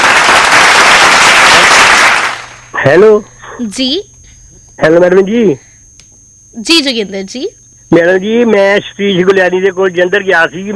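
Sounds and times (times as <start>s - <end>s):
studio applause on a quiz phone-in: 0.0s - 2.7s
speech: 2.8s - 4.1s, 4.8s - 5.7s, 6.5s - 10.7s.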